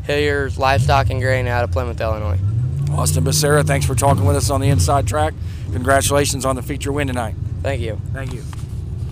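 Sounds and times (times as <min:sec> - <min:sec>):
IMCA Sport Compact race car engine: 0:00.0 - 0:09.1.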